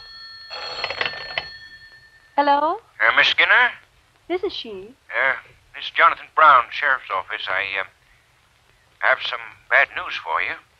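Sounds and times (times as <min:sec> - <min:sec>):
telephone bell ringing: 0:00.0 - 0:02.5
speech: 0:02.4 - 0:08.0, 0:09.0 - 0:10.7.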